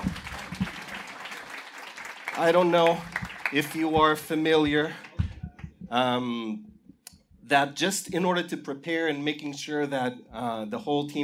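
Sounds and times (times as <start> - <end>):
audience applause: 0.0 - 5.7
speech: 2.4 - 5.0, 5.9 - 6.7, 7.5 - 11.2.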